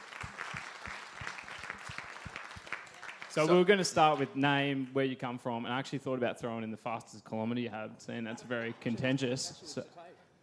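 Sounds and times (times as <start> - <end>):
audience applause: 0.0 - 4.4
speech: 3.4 - 10.2.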